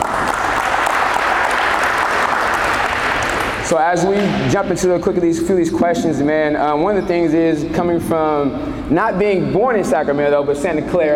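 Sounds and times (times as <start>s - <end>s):
audience applause: 0.0s - 3.6s
speech: 3.7s - 11.1s.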